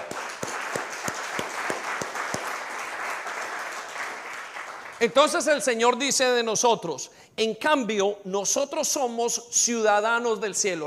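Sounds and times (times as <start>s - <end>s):
audience applauding: 0.0s - 5.5s
speech: 5.0s - 10.8s.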